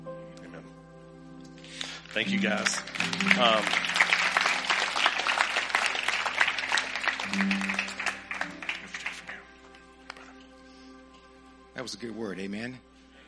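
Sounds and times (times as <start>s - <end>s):
audience applause: 1.6s - 10.2s
speech: 2.1s - 3.8s, 11.8s - 12.9s.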